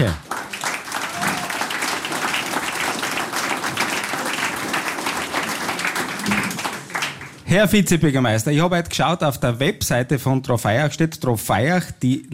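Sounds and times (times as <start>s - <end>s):
audience applause: 0.0s - 7.5s
speech: 7.5s - 12.3s.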